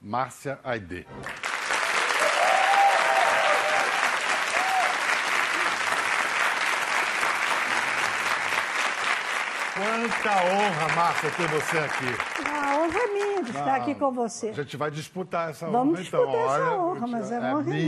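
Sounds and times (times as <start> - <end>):
speech: 0.1 - 1.5, 9.8 - 17.8
audience applause: 1.2 - 13.8.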